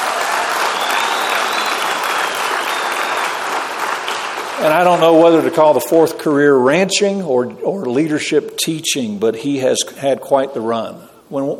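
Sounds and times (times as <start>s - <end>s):
audience applause: 0.0s - 5.8s
speech: 4.6s - 11.5s.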